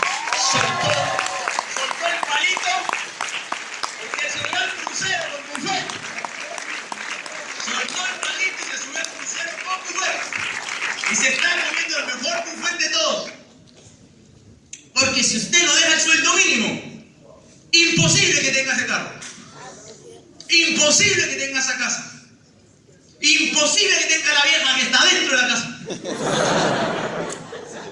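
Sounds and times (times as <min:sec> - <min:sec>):
audience applause: 0:00.0 - 0:12.6
speech: 0:09.0 - 0:13.4, 0:15.2 - 0:16.9, 0:17.7 - 0:19.2, 0:20.5 - 0:22.2, 0:23.2 - 0:26.8
laughter: 0:25.8 - 0:27.8.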